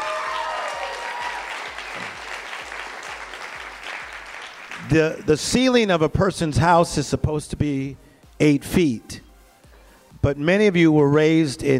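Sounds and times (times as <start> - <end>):
crowd applause: 0.0 - 5.4
speech: 4.9 - 9.2, 10.2 - 11.7.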